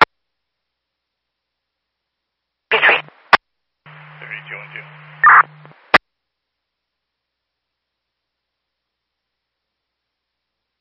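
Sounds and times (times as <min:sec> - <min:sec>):
radio static: 0:02.7 - 0:06.0.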